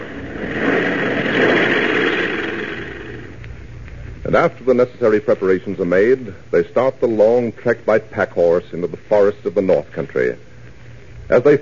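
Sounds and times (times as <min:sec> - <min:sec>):
airplane engine in flight: 0:00.0 - 0:03.4
speech: 0:04.3 - 0:10.5, 0:11.3 - 0:11.6.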